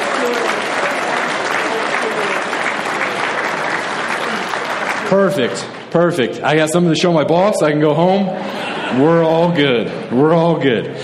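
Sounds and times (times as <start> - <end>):
audience clapping on request: 0.0 - 6.3
speech: 5.1 - 11.0
laughter: 8.0 - 11.0.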